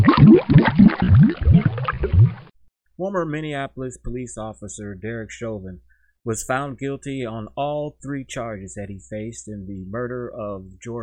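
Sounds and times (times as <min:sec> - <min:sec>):
water cooler gurgling: 0:00.0 - 0:02.5
speech: 0:03.0 - 0:11.0.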